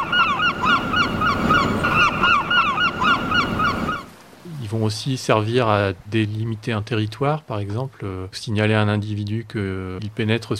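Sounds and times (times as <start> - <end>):
dense seabird colony calls: 0.0 - 4.2
speech: 4.7 - 10.5.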